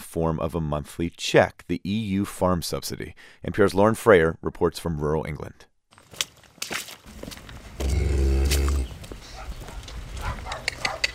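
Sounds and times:
speech: 0.1s - 5.7s
footsteps sloshing through wet ground: 5.9s - 10.6s.

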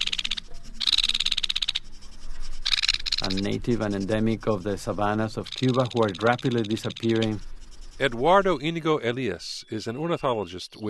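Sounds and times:
Fernandina's Flicker woodpecker song: 0.0s - 10.8s
speech: 3.2s - 10.8s.

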